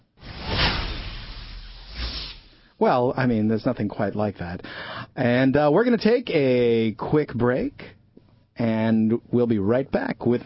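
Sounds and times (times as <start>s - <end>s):
airy whoosh sound effect: 0.2s - 2.5s
speech: 2.8s - 8.0s, 8.6s - 10.4s.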